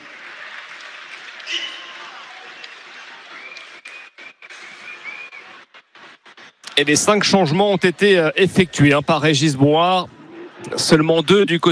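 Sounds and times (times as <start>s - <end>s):
stadium crowd applauding: 0.0s - 8.7s
speech: 6.8s - 11.6s.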